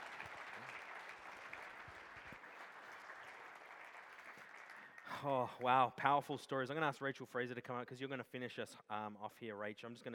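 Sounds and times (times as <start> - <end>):
round of applause: 0.0 - 5.9
speech: 5.2 - 10.1.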